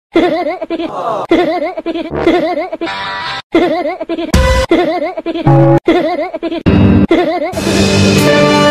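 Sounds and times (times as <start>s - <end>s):
person giggling: 0.2s - 2.9s, 3.5s - 7.6s.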